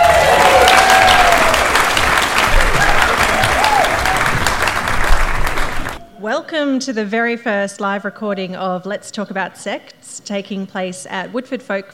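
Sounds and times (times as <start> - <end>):
live show audience applause at Woodford Folk Festival: 0.0 - 6.0
speech: 6.5 - 11.9.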